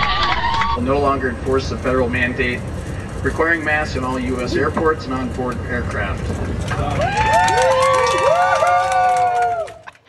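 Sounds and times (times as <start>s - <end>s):
people cheering: 0.0s - 0.8s, 6.7s - 10.0s
speech: 0.8s - 7.8s.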